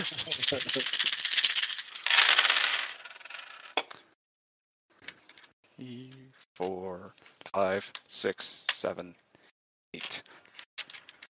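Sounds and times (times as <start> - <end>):
speech: 0.0 - 1.2, 5.8 - 9.2
handful of eighteen dice rattling in a tabletop game: 0.0 - 4.0, 10.0 - 11.2.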